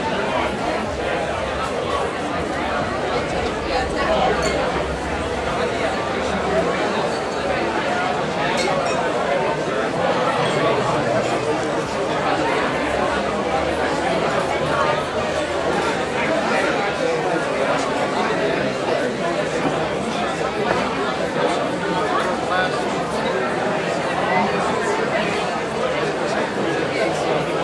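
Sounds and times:
crowd walla in a busy crowded pub bar: 0.0s - 27.6s.

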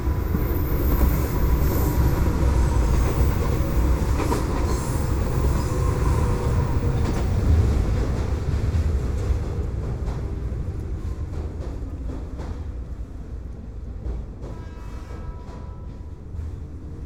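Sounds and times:
urban train ride: 0.0s - 17.0s.

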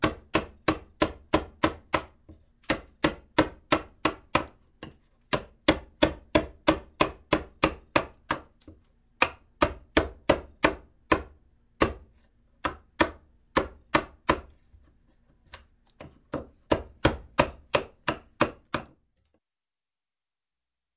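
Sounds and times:
chisel chiseling in construction: 0.0s - 19.0s.

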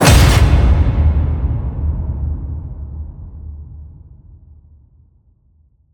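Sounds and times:
cinematic metal crash hit: 0.0s - 2.7s.

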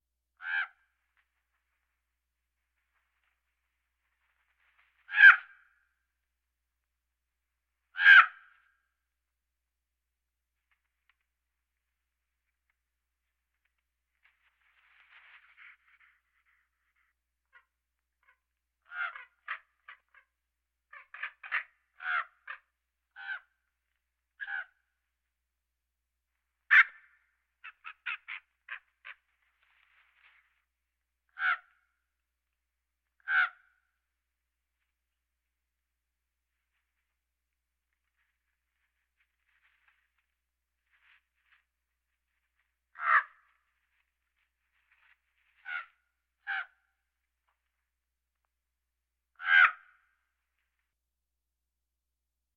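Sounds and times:
birds: 0.4s - 2.0s, 2.6s - 5.8s, 7.8s - 8.8s, 13.3s - 25.0s, 26.4s - 30.7s, 31.3s - 32.0s, 33.2s - 34.0s, 37.8s - 47.7s, 49.4s - 50.2s.

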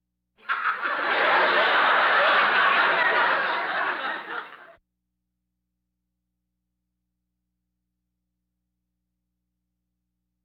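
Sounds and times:
audience laughter: 0.4s - 4.8s.

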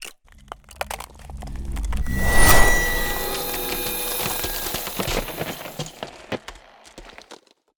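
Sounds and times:
ice spell cold whooshes: 1.1s - 5.8s.

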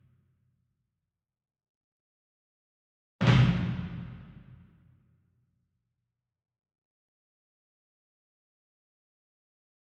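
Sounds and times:
marching bass drum flam with soft beater: 3.2s - 4.2s.

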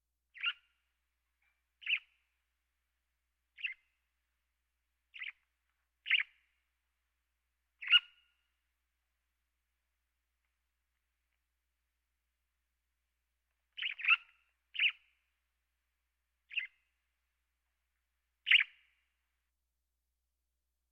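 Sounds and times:
birds: 0.4s - 2.4s, 3.6s - 4.0s, 5.1s - 6.6s, 7.8s - 8.6s, 13.5s - 15.3s, 16.5s - 17.1s, 18.4s - 19.1s.

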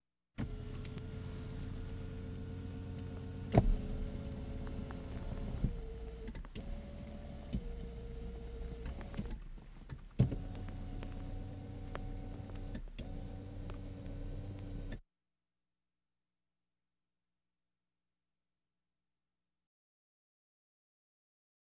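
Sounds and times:
various automobiles: 0.4s - 15.0s.

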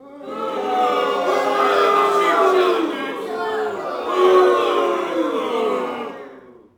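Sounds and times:
boxing crowd small boo: 0.1s - 6.5s.

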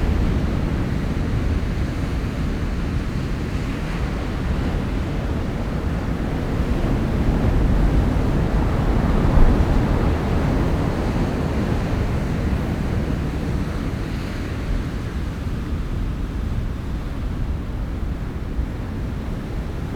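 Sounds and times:
distant sea waves: 0.0s - 19.9s.

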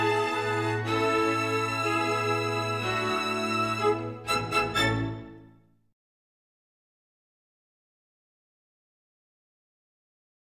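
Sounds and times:
first and second violins playing: 0.0s - 5.5s.

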